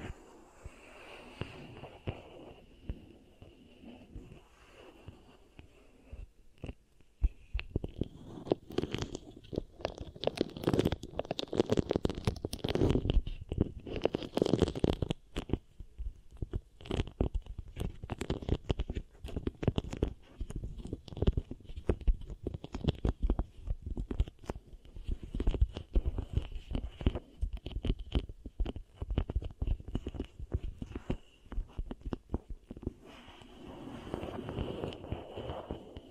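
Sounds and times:
beeswax pressed and kneaded with sticky crackles: 7.5s - 36.0s.

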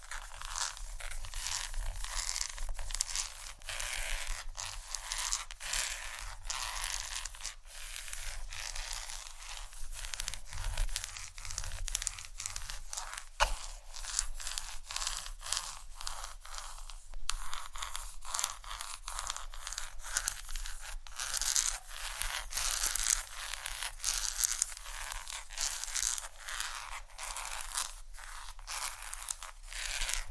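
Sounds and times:
tapping and scratching on chocolate: 0.0s - 30.2s.

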